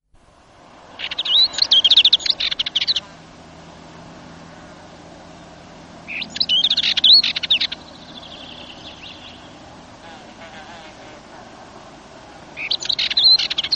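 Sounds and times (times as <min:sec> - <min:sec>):
Dartford warbler dry scratchy chattering: 0:01.0 - 0:03.1, 0:06.1 - 0:10.8, 0:12.6 - 0:13.7.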